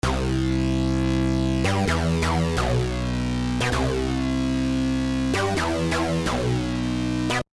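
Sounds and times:
acid synth music: 0:00.0 - 0:07.5.

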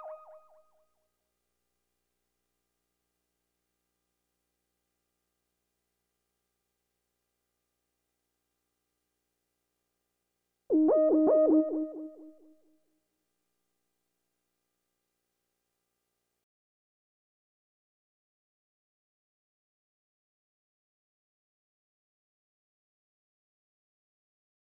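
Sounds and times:
lead melody: 0:10.7 - 0:12.4.

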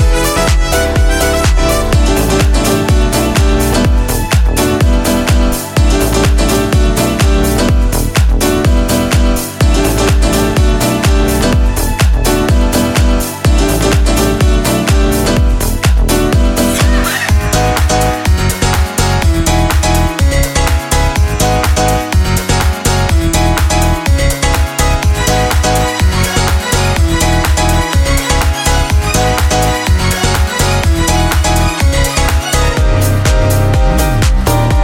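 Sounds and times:
pop piano house music: 0:00.0 - 0:34.8.

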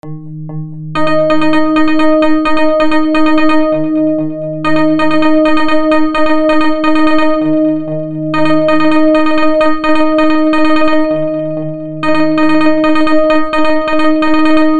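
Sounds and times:
music drop at 128 bpm in A: 0:00.9 - 0:14.7.

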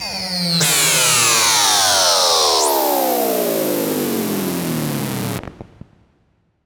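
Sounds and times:
FM synth effect loop: 0:00.0 - 0:05.4.

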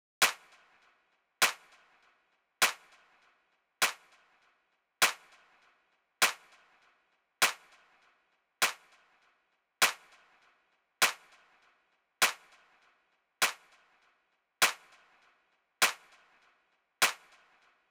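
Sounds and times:
snare drum: 0:00.2 - 0:00.6, 0:01.4 - 0:01.8, 0:02.6 - 0:03.0, 0:03.8 - 0:04.1, 0:05.0 - 0:05.3, 0:06.2 - 0:06.5, 0:07.4 - 0:07.7, 0:08.6 - 0:08.9, 0:09.8 - 0:10.1, 0:11.0 - 0:11.3, 0:12.2 - 0:12.5, 0:13.4 - 0:13.7, 0:14.6 - 0:14.9, 0:15.8 - 0:16.1, 0:17.0 - 0:17.4.

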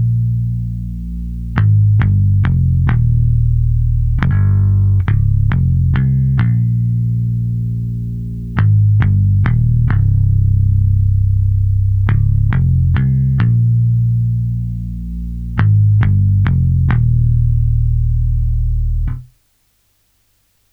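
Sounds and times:
vintage bass guitar in C: 0:00.0 - 0:19.4.

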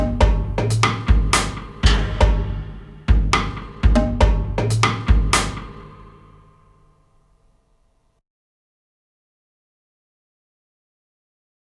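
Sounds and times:
hybrid drums: 0:00.0 - 0:07.1
atmospheric percussion: 0:00.0 - 0:07.4.

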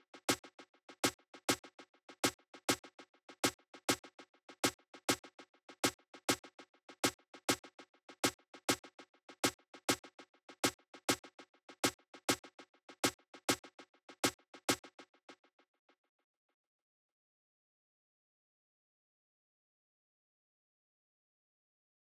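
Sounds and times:
snappy snare drum: 0:00.0 - 0:15.0.

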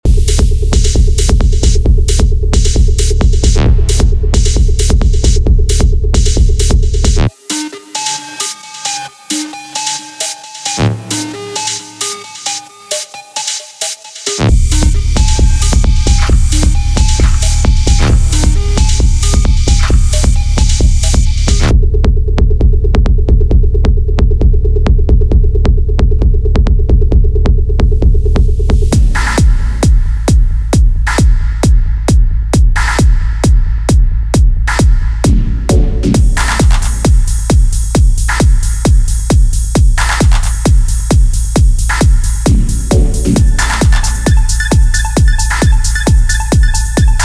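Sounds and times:
dark techno: 0:00.0 - 0:47.2.

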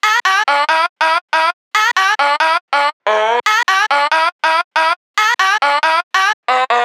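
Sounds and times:
140 BPM hard melody in A minor: 0:00.0 - 0:06.8.

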